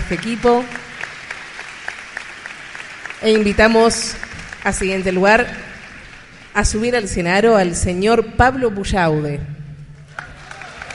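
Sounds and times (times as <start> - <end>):
audience applause: 0.0 - 6.6, 10.1 - 10.9
speech: 0.1 - 0.8, 3.2 - 5.7, 6.6 - 9.6.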